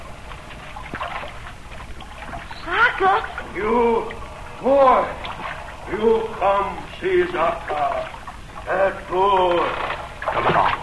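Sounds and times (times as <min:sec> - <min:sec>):
water flooding a ship's hold: 0:00.0 - 0:10.8
speech: 0:03.0 - 0:05.2, 0:05.9 - 0:08.1, 0:08.7 - 0:10.8.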